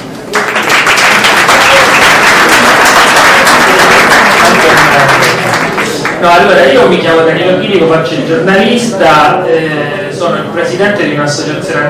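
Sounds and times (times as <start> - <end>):
applause: 0.3 - 6.2
speech: 6.2 - 11.8.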